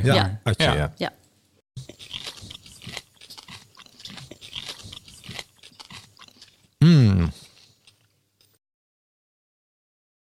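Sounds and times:
speech: 0:00.0 - 0:01.2
chewing a mock oyster bite: 0:01.8 - 0:08.6.

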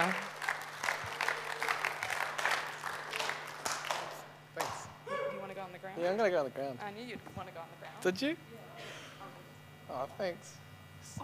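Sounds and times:
audience round of applause: 0:00.0 - 0:04.8
speech: 0:06.0 - 0:08.6, 0:09.9 - 0:10.6.

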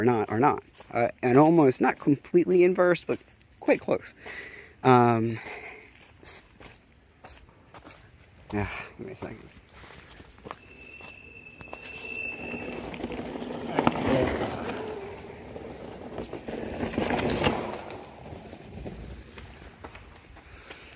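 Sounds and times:
speech: 0:00.0 - 0:05.6, 0:08.5 - 0:09.6
little traffic in the woods: 0:10.6 - 0:19.2.

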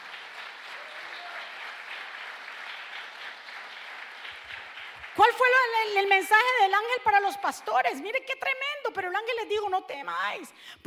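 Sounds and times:
audience applauding loudly: 0:00.0 - 0:06.5
speech: 0:05.2 - 0:10.8.

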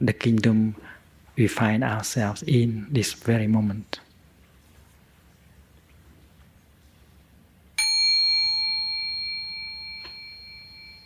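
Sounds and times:
speech: 0:00.0 - 0:04.1
faint low hum: 0:00.0 - 0:11.0
mindfulness bell struck once: 0:07.8 - 0:11.0.

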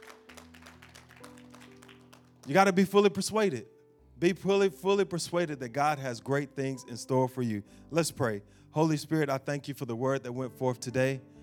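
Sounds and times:
audience hand clapping: 0:00.0 - 0:02.8
speech: 0:02.4 - 0:11.3.

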